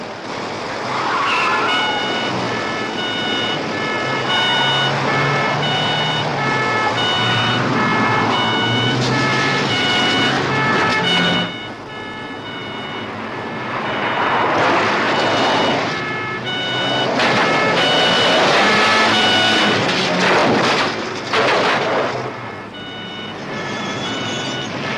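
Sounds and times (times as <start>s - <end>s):
police patrol car engine roaring in a chase: 0.0s - 24.9s
repeating electronic beeping tone: 1.1s - 5.0s, 5.6s - 7.7s, 8.3s - 13.1s, 13.8s - 14.4s, 15.1s - 19.7s, 22.5s - 24.8s.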